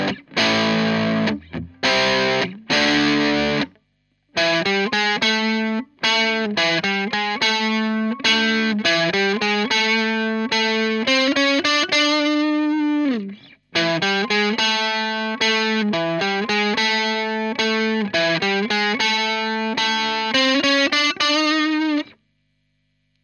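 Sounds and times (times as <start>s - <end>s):
DS1 distortion pedal: 0.0s - 23.2s.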